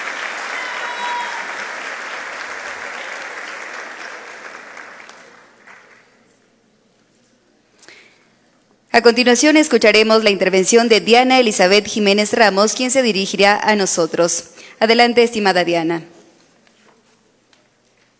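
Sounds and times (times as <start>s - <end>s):
audience applause: 0.0s - 6.2s
speech: 9.0s - 16.1s.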